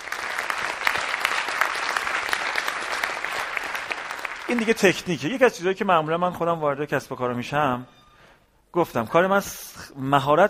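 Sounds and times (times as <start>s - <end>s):
audience applause: 0.0s - 5.1s
speech: 4.5s - 8.0s, 8.7s - 10.4s.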